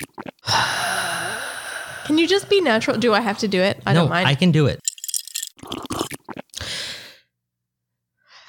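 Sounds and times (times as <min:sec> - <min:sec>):
person breathing: 0:00.4 - 0:02.6, 0:06.6 - 0:07.4
speech: 0:02.1 - 0:04.9.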